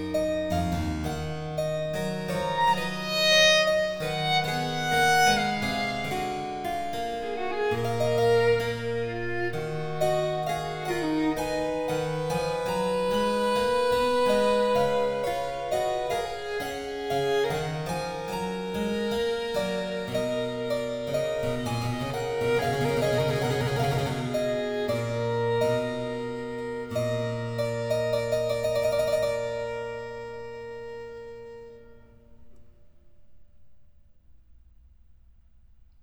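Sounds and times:
violin and keyboard sonata in G major: 0.0 - 32.6.

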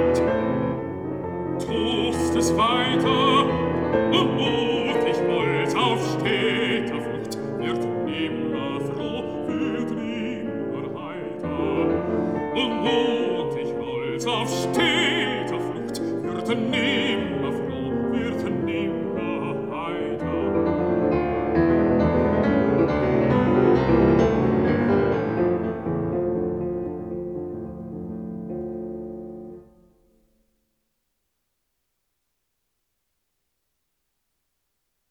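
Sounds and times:
piano: 0.0 - 30.7
person singing: 1.5 - 21.2.

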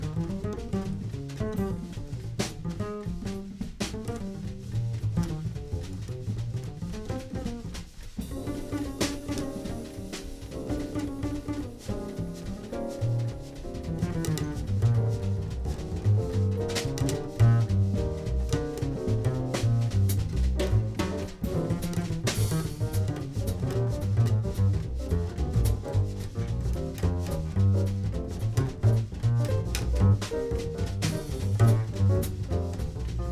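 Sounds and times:
jazz ensemble playing: 0.0 - 33.3.

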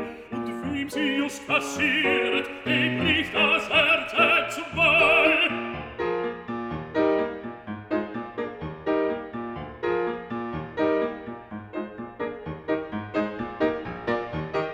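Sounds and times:
person singing a song cycle: 0.0 - 5.9
piano: 0.0 - 14.7.

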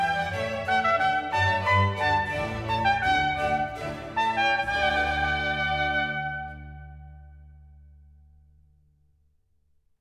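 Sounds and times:
baroque sinfonia for trumpet, strings and basso continuo: 0.0 - 7.5.

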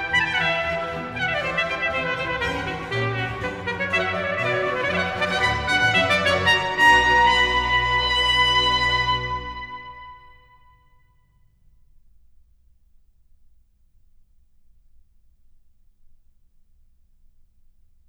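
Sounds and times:
orchestral suite in B minor: 0.0 - 10.4.

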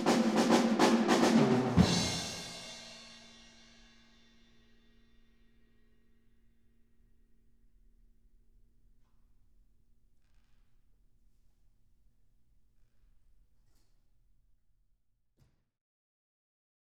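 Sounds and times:
drum playing 70 feet away in a live studio: 0.0 - 3.6.

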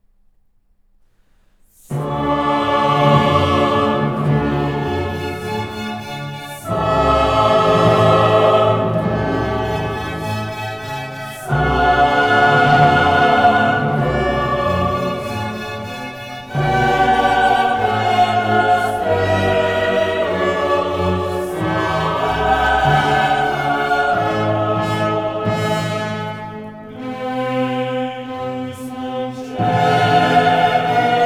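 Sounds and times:
soloists, chorus and orchestra performing a requiem Sanctus: 1.8 - 31.2.

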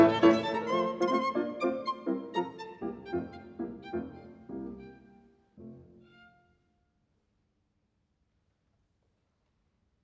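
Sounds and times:
violin and piano sonata scherzo: 0.0 - 6.4.

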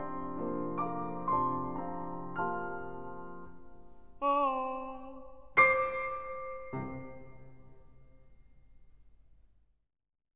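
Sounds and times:
piano: 0.0 - 9.1
person singing a song cycle: 4.2 - 6.0.

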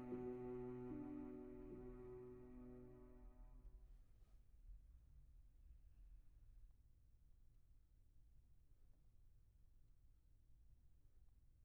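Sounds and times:
piano prelude in B minor: 0.0 - 3.4.

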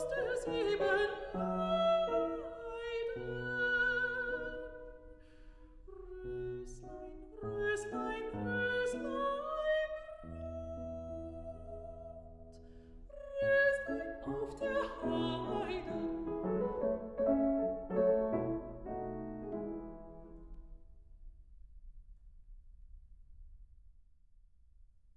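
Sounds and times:
person singing: 0.0 - 4.9, 5.9 - 12.1, 13.2 - 17.0
piano: 0.0 - 22.0.

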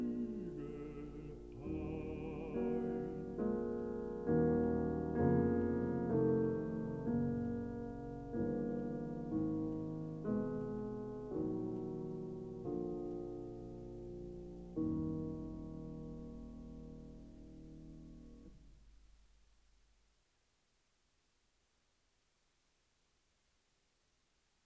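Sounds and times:
person singing: 0.0 - 3.9, 6.2 - 7.6
piano: 0.0 - 20.1.

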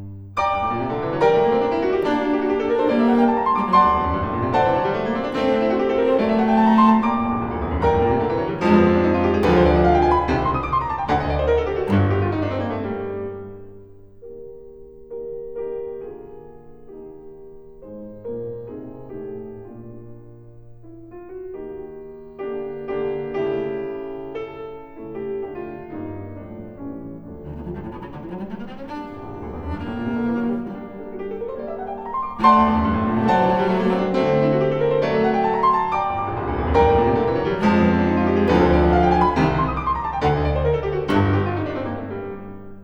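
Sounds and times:
cello: 0.0 - 42.8
piano: 0.0 - 42.8.

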